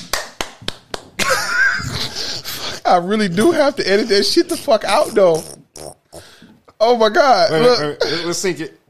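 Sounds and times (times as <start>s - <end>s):
hands clapping: 0.0s - 1.4s
speech: 2.9s - 5.6s, 6.8s - 8.8s.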